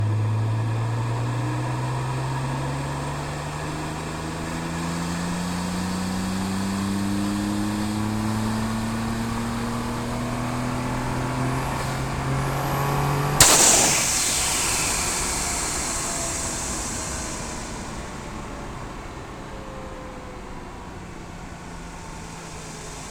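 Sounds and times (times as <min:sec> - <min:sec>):
2012 Nissan GT-R R35 engine during onboard drive on ramps: 0:00.1 - 0:23.0.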